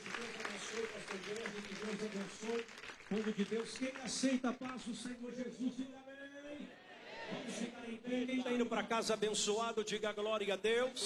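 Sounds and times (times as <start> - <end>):
applause: 0.0 - 5.1
speech: 0.2 - 6.2, 7.6 - 11.0.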